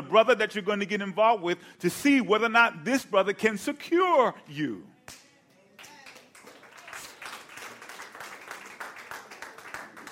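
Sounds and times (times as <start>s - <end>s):
speech: 0.1s - 5.2s
audience clapping: 5.8s - 10.0s.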